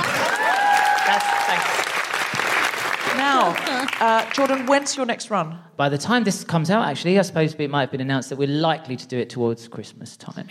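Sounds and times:
audience applause: 0:00.0 - 0:04.9
speech: 0:03.5 - 0:10.4.

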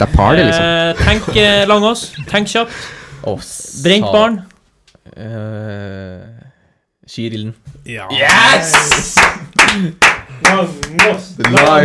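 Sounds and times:
speech: 0:00.0 - 0:04.5, 0:05.1 - 0:06.4, 0:07.1 - 0:11.8
hand clapping: 0:08.2 - 0:11.8.

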